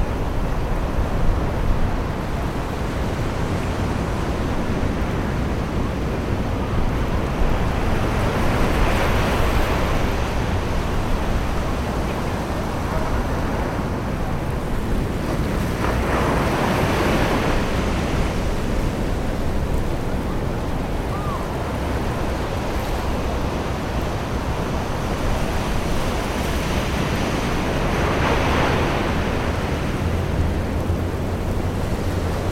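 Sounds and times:
waves rolling onto a summer beach: 0.0s - 32.5s
wind at a beach: 0.0s - 32.5s.

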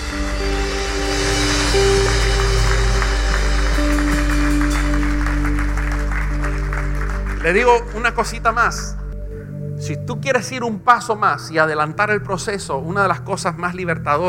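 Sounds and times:
low organ or keyboard tones: 0.0s - 11.6s
loud audience applause: 1.1s - 8.5s
speech: 7.4s - 9.0s, 9.9s - 14.2s.

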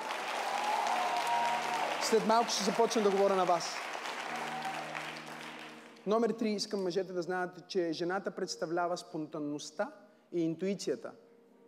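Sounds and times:
women clapping: 0.0s - 5.9s
speech: 2.1s - 3.9s, 6.0s - 11.2s.

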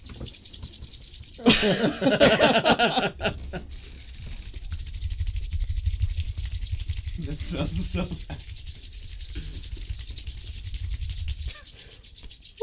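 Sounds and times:
palms rubbing together fast: 0.0s - 12.6s
laughter: 1.4s - 3.6s
speech: 1.6s - 3.7s, 7.3s - 8.5s.

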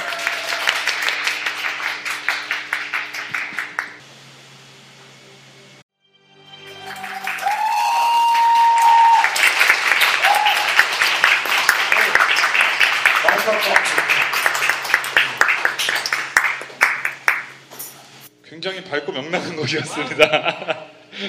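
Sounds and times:
audience applause: 0.0s - 4.0s, 6.7s - 17.6s
speech: 18.9s - 21.2s
laughter: 19.4s - 21.2s.

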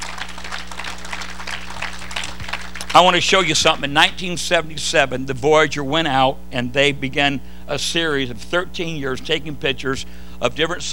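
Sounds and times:
audience hand clapping: 0.0s - 3.8s
speech: 2.9s - 10.9s.

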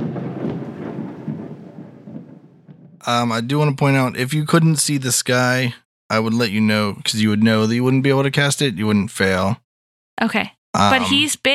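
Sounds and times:
rolling thunder sound effect for a Call Lightning spell in a game: 0.0s - 5.0s
speech: 3.0s - 9.6s, 10.2s - 11.5s.

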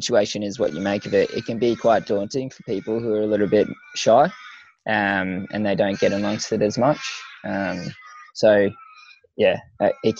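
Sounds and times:
faint chatter: 0.0s - 4.3s, 4.9s - 8.7s
speech: 0.0s - 8.8s, 9.4s - 10.1s
crows cawing in a front yard: 0.6s - 9.2s.

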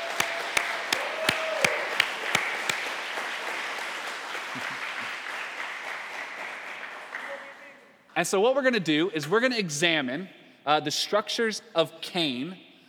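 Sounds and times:
church talk audience applause welcoming a woman to the stage: 0.0s - 7.7s
speech: 8.2s - 12.6s.

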